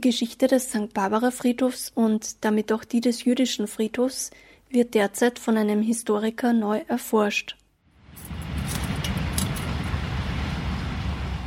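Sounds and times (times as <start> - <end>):
speech: 0.0 - 7.6
passing train rattling and rumbling: 8.1 - 11.4.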